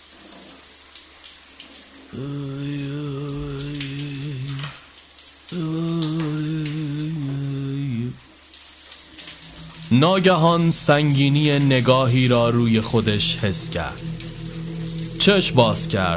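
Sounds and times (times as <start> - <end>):
shower water running: 0.0 - 16.1
speech: 2.1 - 2.6, 10.0 - 14.2, 15.2 - 16.1
person humming: 2.2 - 4.8, 5.5 - 8.2, 9.5 - 16.1.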